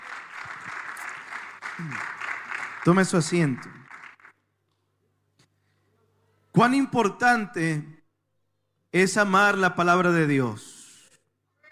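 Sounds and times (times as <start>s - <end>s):
church congregation clapping in praise: 0.0s - 4.5s
speech: 1.8s - 2.2s, 2.8s - 3.8s, 6.6s - 8.0s, 8.9s - 10.8s.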